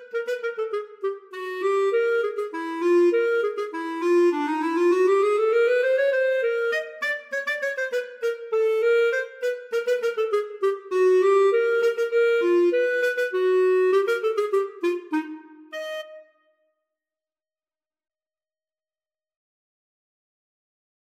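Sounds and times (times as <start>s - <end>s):
flute and clarinet duet: 0.0s - 16.4s.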